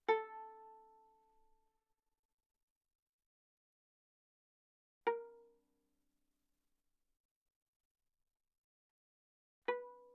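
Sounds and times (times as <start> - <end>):
viola pizzicato on A string fortissimo: 0.0 - 1.4, 9.7 - 10.1.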